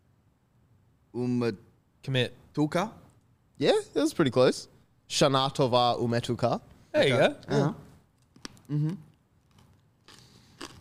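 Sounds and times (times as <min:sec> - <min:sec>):
speech: 0:01.2 - 0:03.0, 0:03.6 - 0:07.8, 0:08.7 - 0:09.1
crunchy biting of dried apple: 0:08.2 - 0:10.7.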